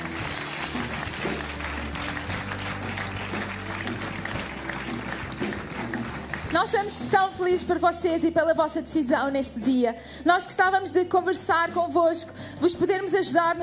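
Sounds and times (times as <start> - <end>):
audience applauding: 0.0 - 7.0
speech: 6.5 - 13.6.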